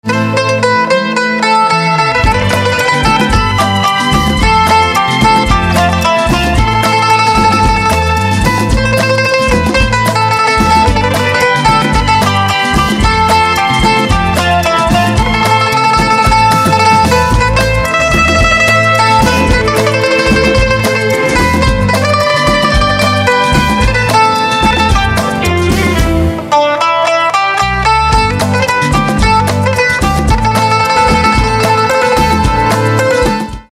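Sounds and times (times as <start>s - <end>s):
mandolin: 0.0s - 33.7s.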